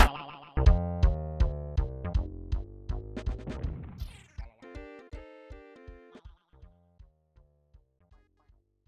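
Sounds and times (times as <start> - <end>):
level game music: 0.0 - 7.0.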